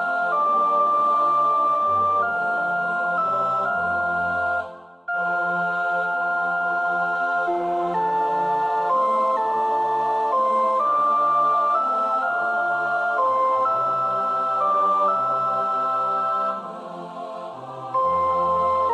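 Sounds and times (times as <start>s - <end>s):
first soprano singing: 0.0s - 18.9s.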